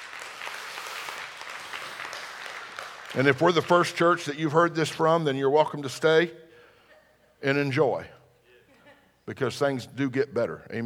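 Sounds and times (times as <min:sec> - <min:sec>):
audience clapping hands: 0:00.0 - 0:04.4
speech: 0:03.1 - 0:06.4, 0:07.4 - 0:08.2, 0:09.3 - 0:10.8.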